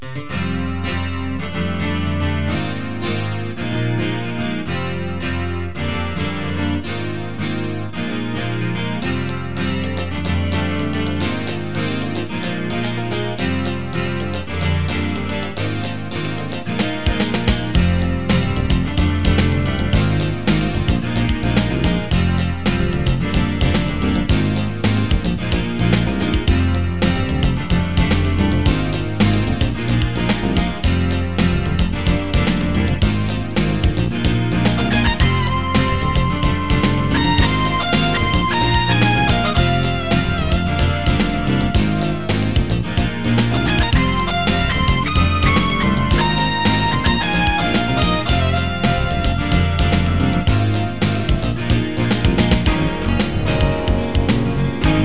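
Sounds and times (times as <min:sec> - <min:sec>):
grunge rock music: 0:00.0 - 0:55.0.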